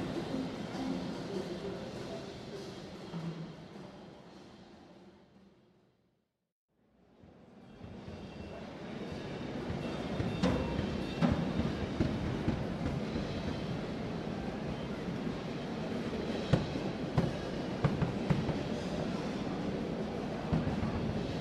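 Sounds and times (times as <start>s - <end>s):
percussion: 0.0s - 4.6s, 7.3s - 14.0s, 16.1s - 19.2s
Musikmesse background noise: 0.0s - 6.2s, 6.8s - 21.3s.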